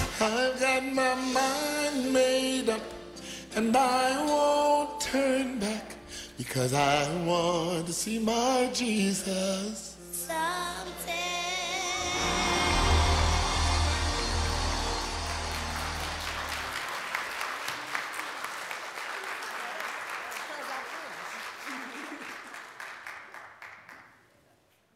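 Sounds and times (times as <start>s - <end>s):
speech: 0.2s - 3.0s, 3.5s - 11.3s
deep sustained tone: 11.9s - 16.7s
audience clapping hands: 12.3s - 24.5s.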